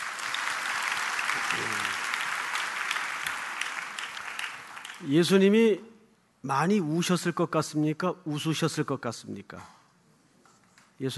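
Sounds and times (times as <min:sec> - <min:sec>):
crowd clapping: 0:00.0 - 0:05.2
speech: 0:01.4 - 0:02.0, 0:05.0 - 0:09.8, 0:11.0 - 0:11.1.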